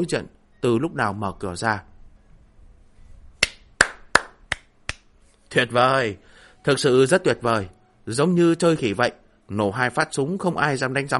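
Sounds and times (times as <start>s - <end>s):
speech: 0.0s - 1.9s, 5.5s - 11.1s
man clapping hands: 3.4s - 5.1s.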